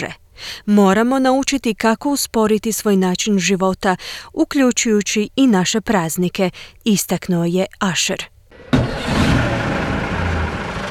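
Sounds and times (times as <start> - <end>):
speech: 0.0 - 9.4
old diesel engine powering a tour bus in Edinburgh: 8.6 - 10.8.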